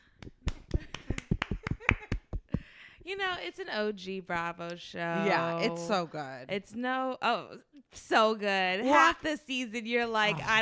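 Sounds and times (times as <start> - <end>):
audience members clapping sparsely: 0.1 - 2.7
speech: 3.1 - 10.5.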